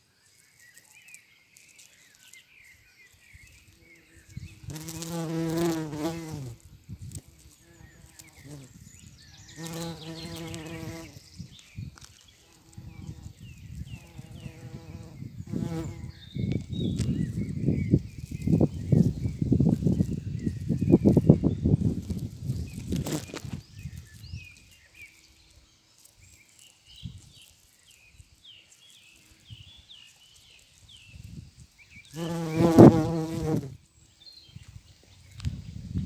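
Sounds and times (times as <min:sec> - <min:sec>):
bumblebees buzzing: 0:03.3 - 0:25.3, 0:30.7 - 0:33.8.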